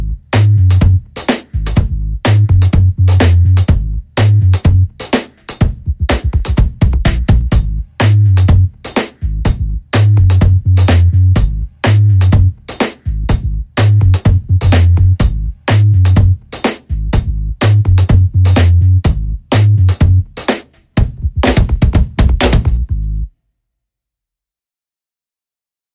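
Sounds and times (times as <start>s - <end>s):
drum and bass music: 0.0s - 23.3s.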